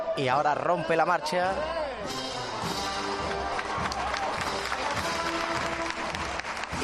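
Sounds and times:
speech: 0.2s - 2.2s
crowd applauding as procession float moves: 2.6s - 6.8s.

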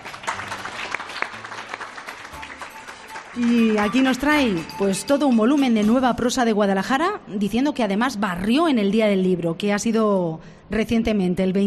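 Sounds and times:
audience applause: 0.0s - 4.7s
speech: 3.4s - 11.6s.

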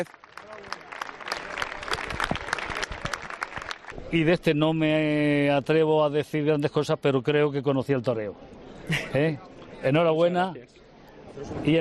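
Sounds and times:
speech: 0.0s - 0.3s, 4.1s - 10.7s, 11.4s - 11.7s
audience applause: 0.0s - 4.0s.

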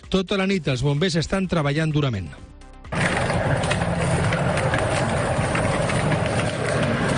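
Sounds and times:
speech: 0.1s - 2.5s
flames of a wildfire burning in Amer: 2.9s - 7.1s.

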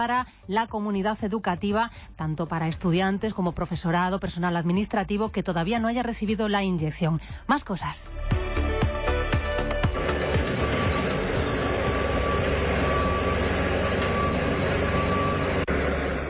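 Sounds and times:
speech: 0.0s - 8.5s
heavy truck engines rumbling at night roadworks: 9.1s - 16.2s
reversing beeps: 10.0s - 16.2s.

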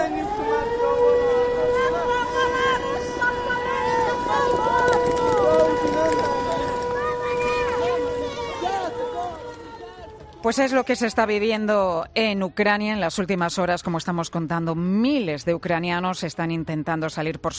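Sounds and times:
air raid sirens in Ukraine: 0.0s - 11.8s
speech: 10.5s - 17.5s.

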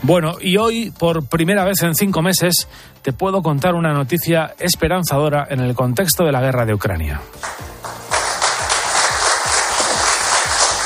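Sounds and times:
speech: 0.0s - 8.0s
applause in Turkey: 7.4s - 10.8s.

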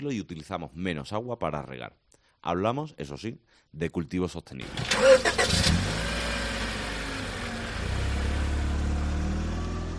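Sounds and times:
speech: 0.0s - 5.9s
car engine humming while driving: 4.7s - 9.9s.

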